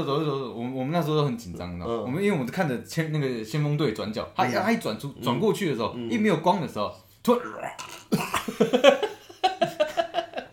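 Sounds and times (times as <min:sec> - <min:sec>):
speech: 0:00.0 - 0:09.0
person's voice imitating a creature's cry as dry retching: 0:07.4 - 0:08.5
laughter: 0:08.2 - 0:10.5.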